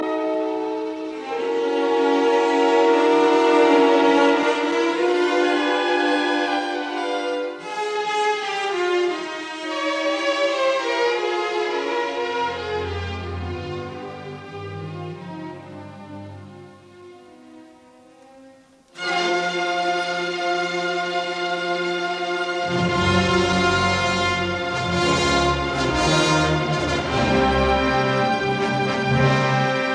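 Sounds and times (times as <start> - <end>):
symphony orchestra playing a moderate allegro: 0.0 - 29.9.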